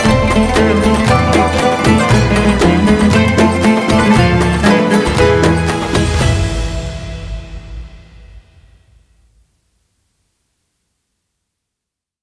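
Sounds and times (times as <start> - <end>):
music: 0.0 - 9.4.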